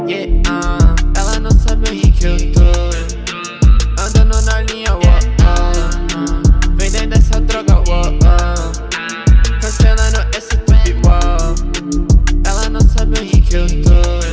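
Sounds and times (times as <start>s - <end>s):
music: 0.0s - 14.3s.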